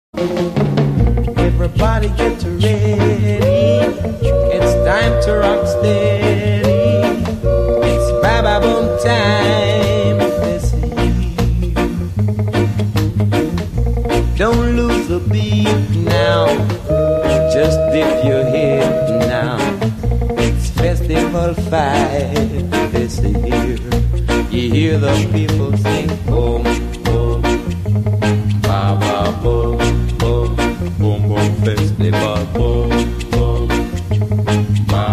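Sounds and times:
rocksteady roots reggae oldies on radio: 0:00.2 - 0:35.1.

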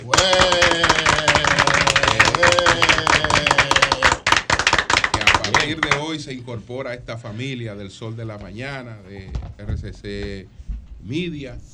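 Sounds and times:
applause: 0:00.0 - 0:06.2
speech: 0:05.7 - 0:11.7.

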